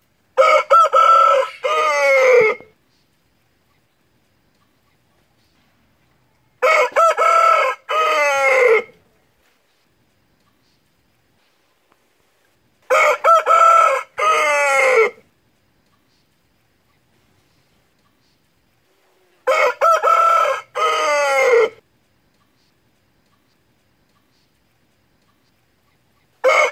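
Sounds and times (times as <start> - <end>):
fighting rooster crowing: 0.4 - 2.7, 6.1 - 9.2, 12.9 - 15.2, 19.4 - 21.8, 26.4 - 26.6.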